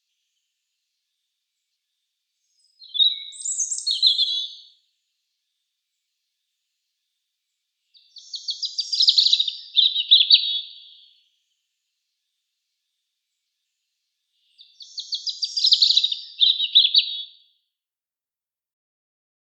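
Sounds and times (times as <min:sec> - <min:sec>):
European robin singing: 0:02.4 - 0:04.8, 0:07.9 - 0:11.3, 0:14.4 - 0:17.4.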